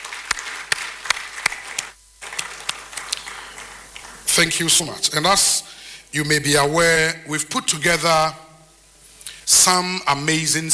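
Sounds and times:
audience applause: 0.0s - 4.8s
speech: 4.4s - 8.4s, 9.5s - 10.7s.

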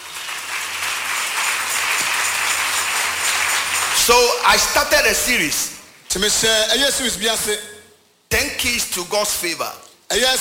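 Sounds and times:
audience clapping: 0.0s - 5.0s
speech: 4.0s - 7.7s, 8.3s - 10.3s.

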